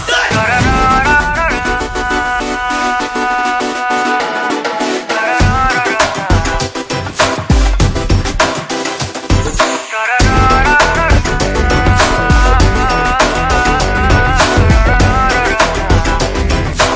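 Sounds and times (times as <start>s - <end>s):
Telugu background music ringtone: 0.2s - 16.9s.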